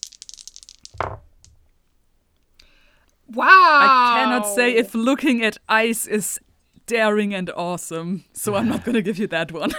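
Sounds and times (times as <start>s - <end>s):
dice rattling and landing: 0.0s - 1.6s
speech: 3.3s - 9.7s.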